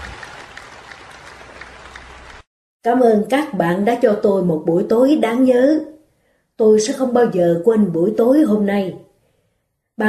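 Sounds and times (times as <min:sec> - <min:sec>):
audience applauding a woman at an evening gathering: 0:00.0 - 0:02.5
speech: 0:02.8 - 0:05.9, 0:06.6 - 0:09.0.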